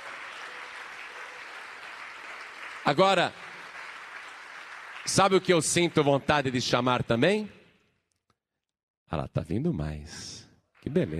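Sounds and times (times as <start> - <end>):
congregation applauding during a church service: 0.0 - 7.0
speech: 2.8 - 3.4, 5.0 - 7.6, 9.1 - 11.1.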